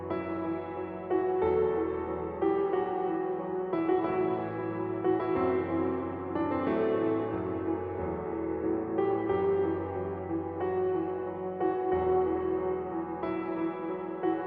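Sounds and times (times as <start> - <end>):
soft piano: 0.0 - 14.4.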